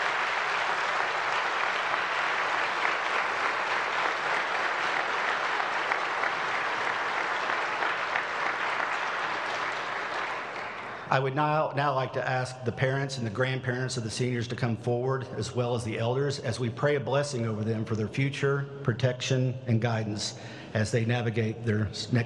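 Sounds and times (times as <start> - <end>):
audience applause: 0.0 - 11.1
speech: 11.1 - 22.2.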